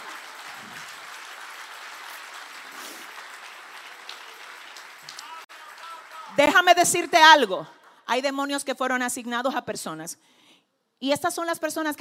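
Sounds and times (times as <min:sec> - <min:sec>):
audience applauding: 0:00.0 - 0:07.4
speech: 0:06.4 - 0:10.4, 0:11.0 - 0:11.9.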